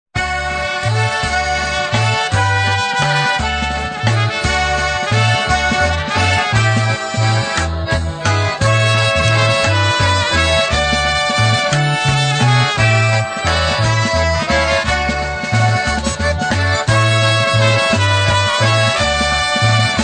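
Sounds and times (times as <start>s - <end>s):
waltz music: 0.2s - 20.0s.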